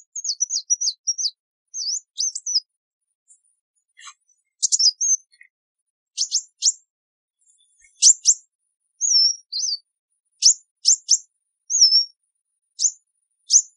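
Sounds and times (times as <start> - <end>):
sunbird chips and whistles: 0.2 - 2.7, 4.0 - 5.4, 6.2 - 6.8, 7.9 - 8.4, 9.0 - 9.8, 10.4 - 12.2, 12.8 - 13.7.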